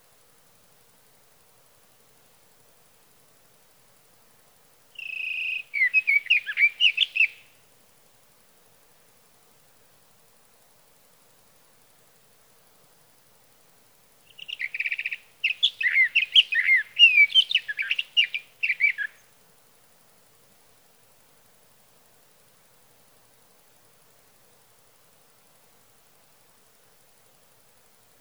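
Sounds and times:
sage thrasher song: 5.0 - 7.4, 14.3 - 19.2.

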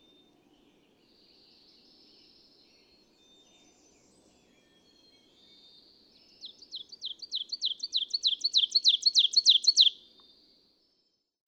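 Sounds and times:
ovenbird singing: 6.3 - 10.0.

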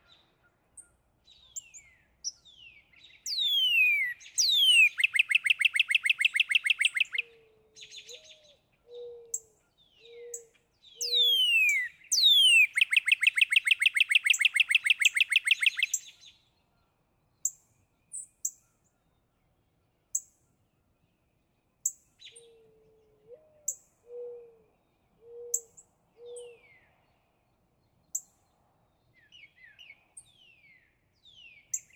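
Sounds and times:
northern cardinal song: 3.3 - 7.2, 11.1 - 15.9.

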